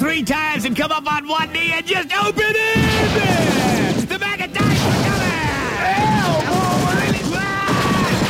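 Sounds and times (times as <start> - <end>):
speech: 0.2 - 6.1
voice imitating a riot gun firing on full auto: 2.8 - 8.2.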